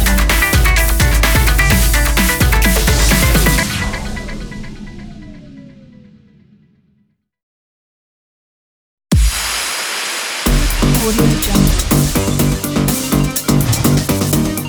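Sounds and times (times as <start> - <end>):
dance music logo: 0.0 - 5.2, 10.4 - 14.6.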